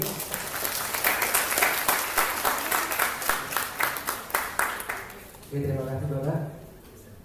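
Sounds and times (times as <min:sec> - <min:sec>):
audience applause: 0:00.0 - 0:05.4
speech: 0:05.5 - 0:06.6.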